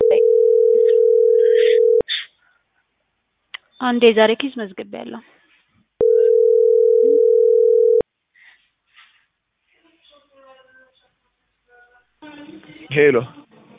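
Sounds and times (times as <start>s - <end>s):
telephone busy tone after call cut off: 0.0s - 2.0s, 6.0s - 8.0s
speech: 3.8s - 5.4s, 12.9s - 13.4s.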